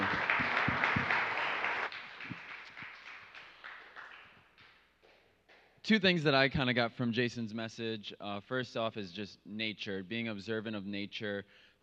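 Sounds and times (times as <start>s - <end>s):
round of applause: 0.0s - 5.2s
speech: 5.9s - 11.7s.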